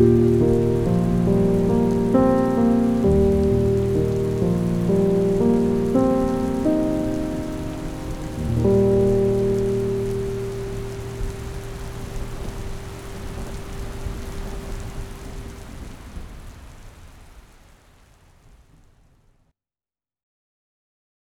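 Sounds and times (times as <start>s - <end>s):
piano: 0.0s - 15.7s
thunder: 0.0s - 17.2s
rain: 0.0s - 19.4s.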